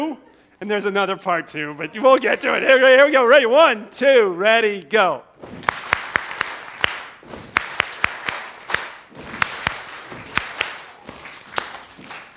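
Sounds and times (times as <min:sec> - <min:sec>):
speech: 0:00.0 - 0:05.7
rhythmic stomping: 0:05.4 - 0:12.3
rhythmic hand clapping: 0:05.5 - 0:12.3.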